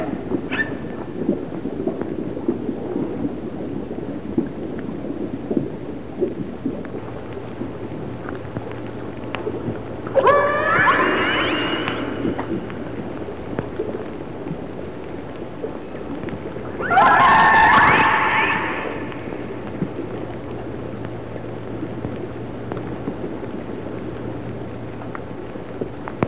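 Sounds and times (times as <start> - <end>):
low water noise: 0.0 - 26.2
faint clicks: 5.5 - 26.2
orca call: 10.1 - 12.9, 16.8 - 19.6.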